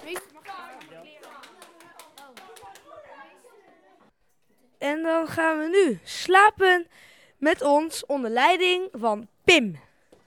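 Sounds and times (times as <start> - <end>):
children applauding: 0.0 - 3.5
speech: 4.8 - 9.9.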